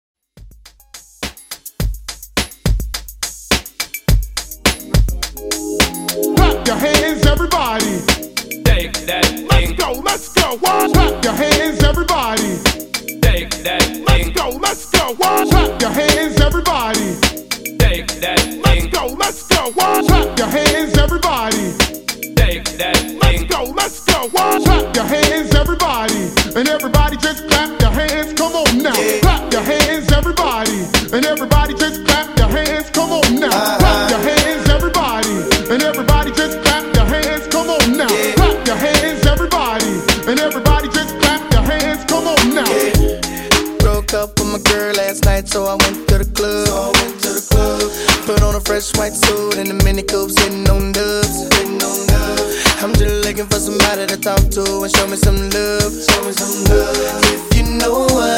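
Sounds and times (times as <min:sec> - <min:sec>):
RnB music: 0:00.9 - 0:58.3.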